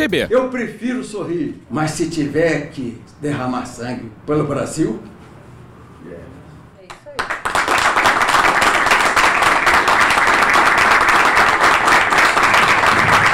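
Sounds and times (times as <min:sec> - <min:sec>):
speech: 0:00.0 - 0:05.2
crowd applause at a political event: 0:07.7 - 0:13.3.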